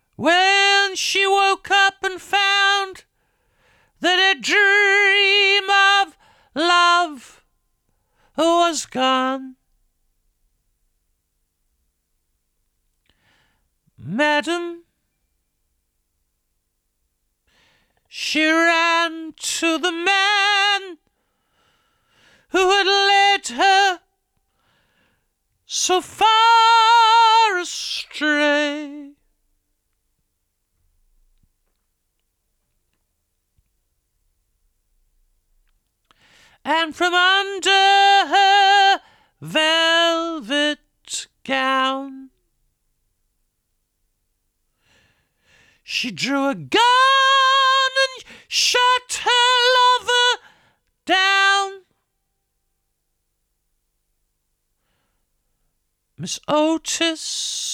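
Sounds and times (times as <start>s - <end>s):
vocals: 0.0s - 9.9s, 13.0s - 15.3s, 17.4s - 29.7s, 36.0s - 42.8s, 44.8s - 52.6s, 56.1s - 57.7s.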